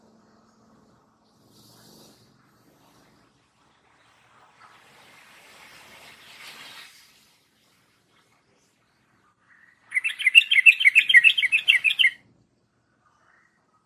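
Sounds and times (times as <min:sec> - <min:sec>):
yellow-vented bulbul chattering warbled song: 0:09.9 - 0:12.2.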